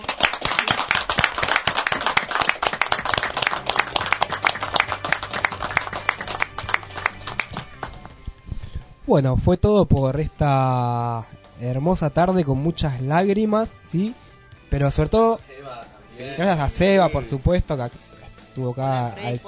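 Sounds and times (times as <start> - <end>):
applause: 0.0 - 8.1
speech: 9.1 - 15.5, 16.2 - 19.4.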